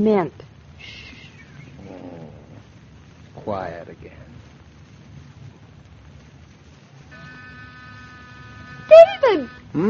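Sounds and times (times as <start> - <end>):
speech: 0.0 - 1.0, 3.4 - 4.4, 8.9 - 9.8
cat purring: 1.6 - 3.1.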